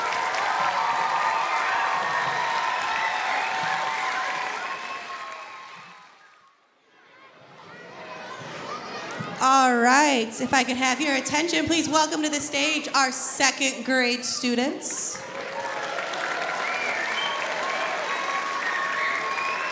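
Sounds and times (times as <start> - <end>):
audience applause: 0.0 - 6.4, 15.2 - 19.7
speech: 9.4 - 15.3.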